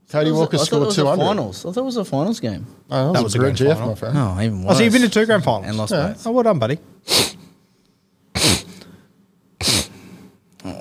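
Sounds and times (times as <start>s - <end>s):
speech: 0.1s - 7.3s
sneeze or sniffle: 7.1s - 7.6s, 8.4s - 8.8s, 9.6s - 10.3s.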